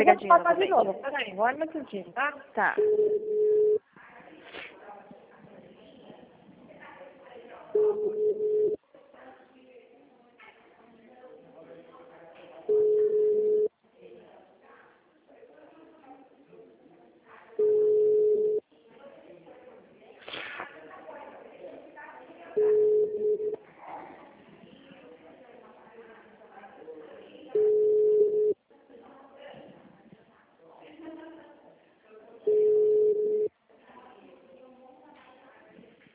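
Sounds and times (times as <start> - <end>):
speech: 0.0 - 3.6, 7.8 - 8.5
unanswered telephone call ringback tone: 2.8 - 3.8, 7.8 - 8.8, 12.7 - 13.7, 17.6 - 18.6, 22.6 - 23.6, 27.6 - 28.6, 32.5 - 33.5.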